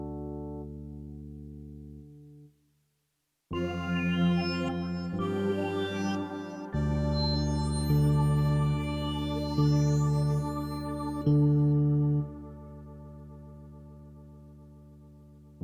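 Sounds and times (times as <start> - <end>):
music interlude: 3.6 - 13.6.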